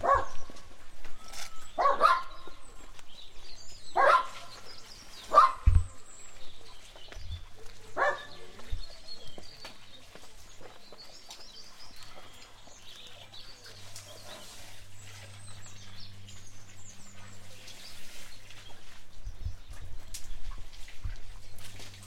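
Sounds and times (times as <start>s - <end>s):
dogs barking: 0.0s - 0.6s, 1.8s - 2.6s, 3.8s - 5.8s, 7.6s - 8.7s.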